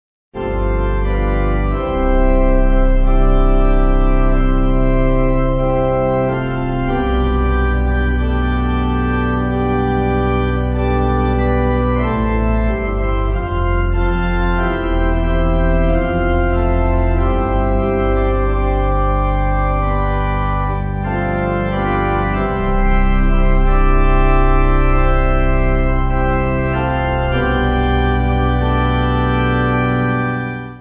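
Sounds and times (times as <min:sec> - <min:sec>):
pipe organ: 0:00.4 - 0:30.7.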